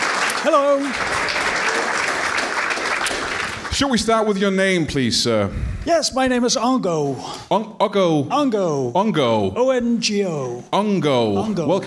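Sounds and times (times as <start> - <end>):
audience applause on a comedy talk show: 0.0 - 4.1
speech: 0.4 - 2.0, 3.8 - 11.8.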